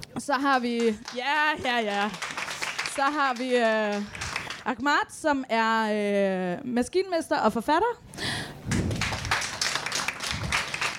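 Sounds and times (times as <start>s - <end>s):
speech: 0.0s - 2.4s, 3.0s - 8.1s
audience clapping: 0.4s - 4.8s, 8.7s - 10.9s.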